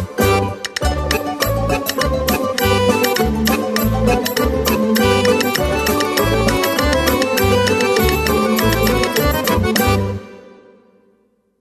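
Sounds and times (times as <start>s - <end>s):
merry dance music: 0.2s - 10.0s.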